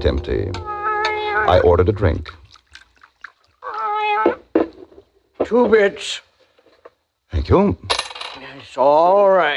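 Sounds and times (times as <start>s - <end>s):
speech: 0.0s - 0.8s, 1.4s - 2.4s, 5.5s - 6.3s, 7.3s - 7.9s, 8.6s - 9.5s
faint small noises: 0.0s - 9.5s
cat sitting on a bar meowing: 0.3s - 1.8s, 3.6s - 4.4s.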